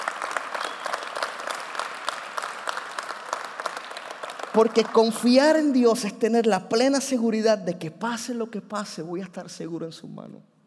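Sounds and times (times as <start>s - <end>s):
audience applause: 0.0s - 5.5s
speech: 4.6s - 10.5s.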